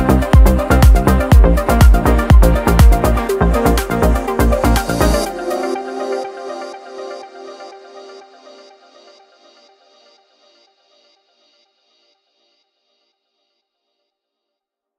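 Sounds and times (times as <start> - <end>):
melodic techno remix: 0.0 - 11.6.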